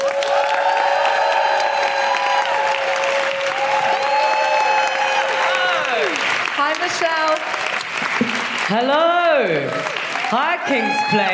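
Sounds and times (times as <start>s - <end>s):
comedy audience cheering and whooping at King's Place: 0.0s - 6.5s, 9.3s - 11.3s
comedy audience clapping at King's Place: 0.0s - 11.3s
speech: 6.9s - 7.5s, 8.7s - 11.3s.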